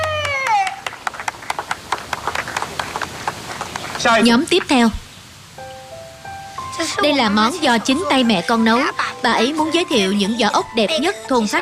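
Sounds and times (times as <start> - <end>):
applause after a dish is presented: 0.0 - 4.8
speech: 4.0 - 5.0, 6.8 - 11.6.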